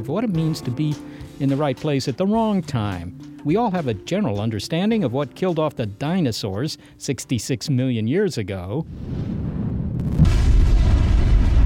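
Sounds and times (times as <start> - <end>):
speech: 0.0 - 9.4
asteroid impact explosion: 9.0 - 11.6.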